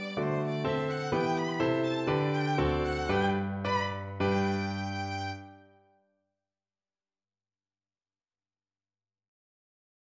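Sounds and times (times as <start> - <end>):
classical rondo: 0.0 - 5.6.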